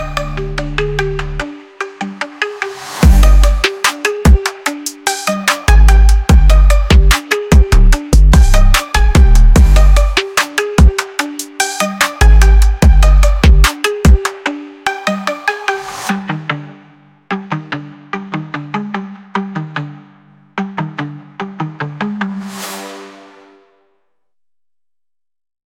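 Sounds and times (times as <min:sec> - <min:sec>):
trap music: 0:00.0 - 0:19.9.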